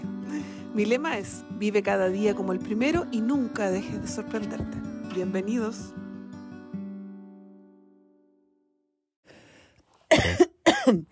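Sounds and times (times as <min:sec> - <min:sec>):
speech: 0:00.8 - 0:06.0, 0:10.2 - 0:11.1
coughing: 0:10.1 - 0:11.1.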